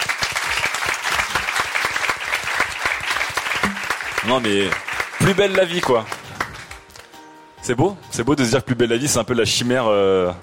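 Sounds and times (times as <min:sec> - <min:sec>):
audience clapping: 0:00.0 - 0:07.2
speech: 0:04.2 - 0:06.2, 0:07.6 - 0:10.4.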